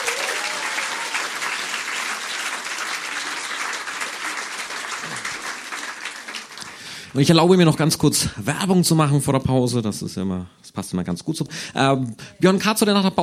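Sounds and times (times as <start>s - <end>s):
audience applause for a poet: 0.0s - 7.3s
speech: 7.1s - 13.2s.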